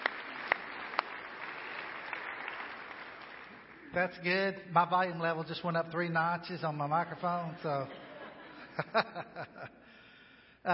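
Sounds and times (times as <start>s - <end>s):
audience applause for volunteers in the sound booth: 0.0s - 3.9s
speech: 4.0s - 8.0s, 8.8s - 9.8s
laughter: 7.6s - 9.9s.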